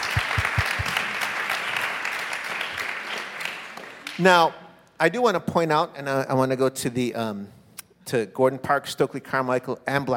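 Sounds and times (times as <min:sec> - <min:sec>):
audience applause: 0:00.0 - 0:04.2
speech: 0:04.2 - 0:10.1.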